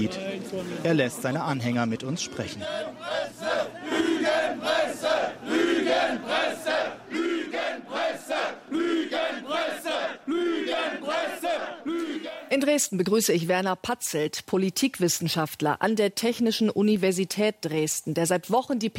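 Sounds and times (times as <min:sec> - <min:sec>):
speech: 0:00.0 - 0:03.4, 0:12.5 - 0:18.9
large crowd chanting at a street demonstration: 0:02.2 - 0:12.5.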